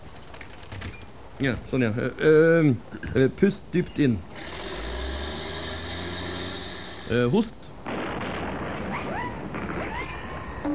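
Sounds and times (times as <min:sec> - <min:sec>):
speech: 0:01.4 - 0:04.3, 0:07.1 - 0:07.6
street traffic noise outside an office: 0:04.0 - 0:07.8.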